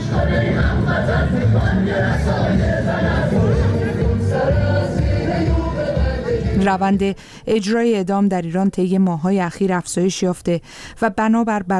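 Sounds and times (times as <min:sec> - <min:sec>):
protest rally crowd of Iranians abroad chanting against executions: 0:00.0 - 0:06.6
speech: 0:06.6 - 0:11.7.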